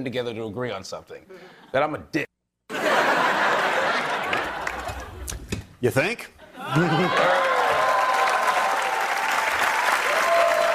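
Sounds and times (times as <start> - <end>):
speech: 0.0 - 2.3, 5.8 - 7.4
laughter: 2.7 - 5.4, 6.4 - 8.1
audience applause: 3.5 - 5.2, 6.6 - 10.7.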